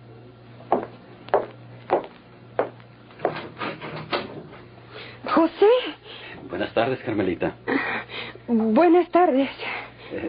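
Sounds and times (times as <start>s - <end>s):
knocking on a door: 0.7s - 3.4s
speech: 5.4s - 7.7s, 8.5s - 10.2s.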